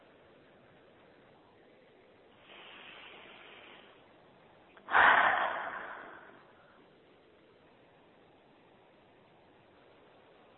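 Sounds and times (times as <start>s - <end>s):
slow breath during a guided meditation: 2.4s - 4.1s, 4.8s - 6.9s.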